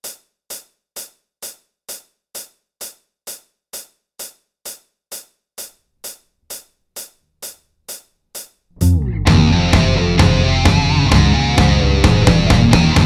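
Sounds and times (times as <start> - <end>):
band jamming: 8.8 - 13.0.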